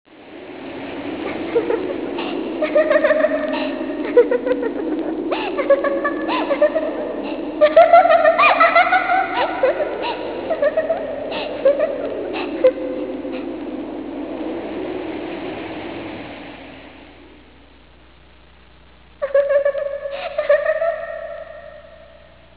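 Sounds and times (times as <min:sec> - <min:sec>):
anime character laughing: 0:01.2 - 0:13.6, 0:19.2 - 0:22.0.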